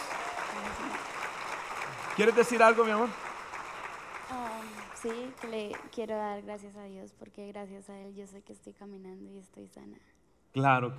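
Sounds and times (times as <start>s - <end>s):
audience applause: 0.0s - 6.0s
speech: 2.2s - 3.2s, 5.0s - 10.9s.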